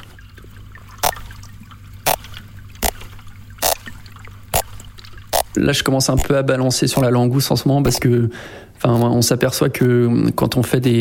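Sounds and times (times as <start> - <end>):
underwater clicks at rocky drop-offs on the Côte de Granit Rose at Perros: 2.8 - 3.0, 3.6 - 3.9, 5.3 - 5.6
speech: 5.6 - 11.0.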